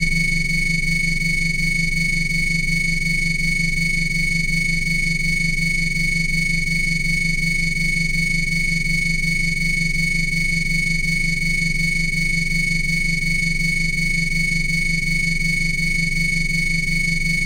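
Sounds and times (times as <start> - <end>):
virtual engine: 0.0 - 17.4.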